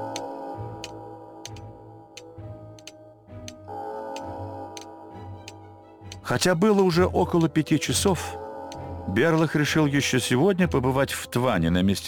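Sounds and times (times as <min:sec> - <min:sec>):
wall clock ticking in an empty office: 0:00.1 - 0:07.6
speech: 0:06.3 - 0:08.4, 0:09.1 - 0:12.0.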